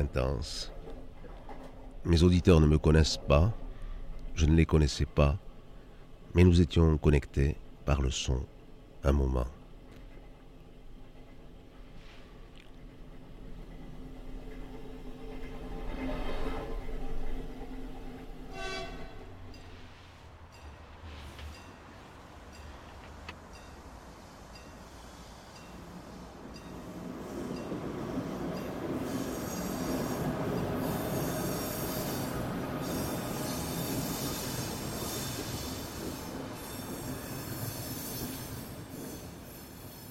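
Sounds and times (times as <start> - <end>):
speech: 0.0 - 0.8, 2.0 - 3.6, 4.4 - 5.5, 6.3 - 9.6
tram in Rijeka, Croatia, wheels squealing: 13.3 - 40.0.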